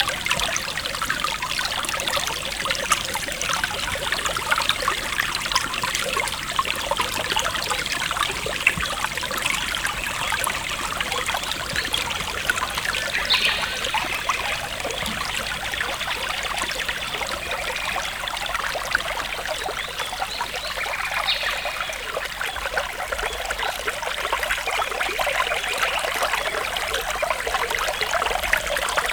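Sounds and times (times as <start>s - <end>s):
river flowing: 0.0s - 19.5s
wind across a stream: 0.0s - 29.1s.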